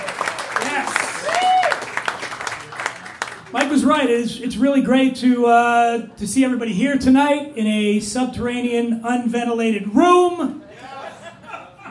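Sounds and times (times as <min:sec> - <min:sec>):
audience applause: 0:00.0 - 0:03.8
speech: 0:03.7 - 0:10.6
laughter: 0:10.7 - 0:11.9.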